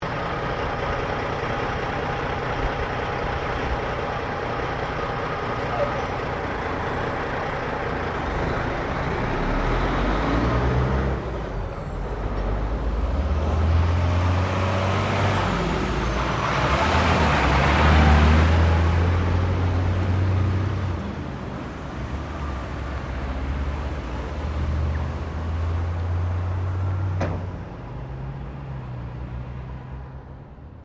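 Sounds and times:
semi-trailer truck driving off in traffic: 0.0 - 30.8.

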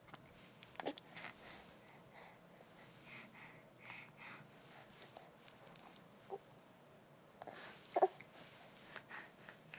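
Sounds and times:
6-month-old baby breathing: 0.8 - 5.9, 7.4 - 9.6.

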